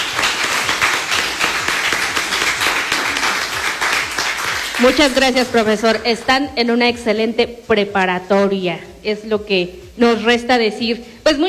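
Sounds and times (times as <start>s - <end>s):
crowd applauding: 0.0s - 5.7s
speech: 4.8s - 11.4s.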